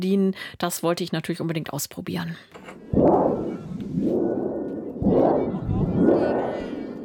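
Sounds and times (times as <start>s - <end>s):
speech: 0.0s - 3.1s
thunder sheet shaken to make storm: 2.8s - 7.0s.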